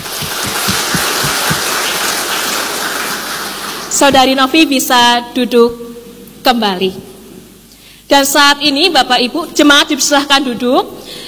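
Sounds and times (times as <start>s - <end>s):
audience applause: 0.0s - 3.7s
speech: 4.0s - 5.8s, 6.4s - 7.1s, 8.1s - 11.0s.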